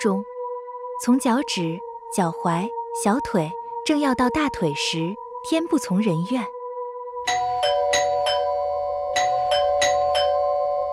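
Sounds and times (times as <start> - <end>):
speech: 0.0 - 0.3, 1.0 - 6.6
doorbell ringing: 7.3 - 10.9.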